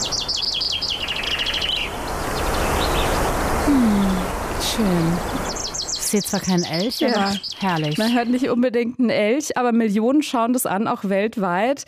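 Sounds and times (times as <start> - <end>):
birds singing in forest: 0.0 - 8.6
wind in forest: 0.0 - 11.8
speech: 3.7 - 4.2, 4.8 - 5.5, 6.1 - 11.8.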